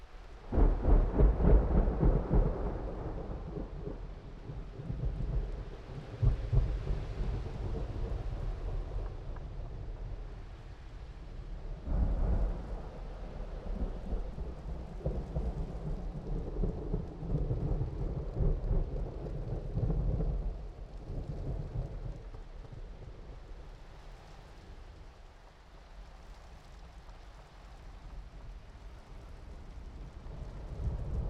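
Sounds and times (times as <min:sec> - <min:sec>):
distant rolling thunder: 0:00.5 - 0:10.4, 0:11.8 - 0:23.1, 0:29.7 - 0:31.2.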